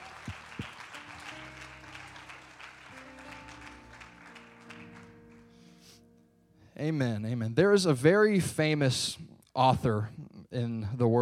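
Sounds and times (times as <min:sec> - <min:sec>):
audience clapping hands: 0:00.0 - 0:05.5
speech: 0:06.8 - 0:11.2.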